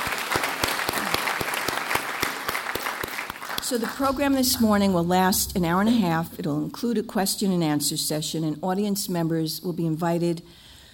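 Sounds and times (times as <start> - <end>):
audience applauding at a morning lecture program: 0.0 - 4.1
speech: 3.7 - 10.7.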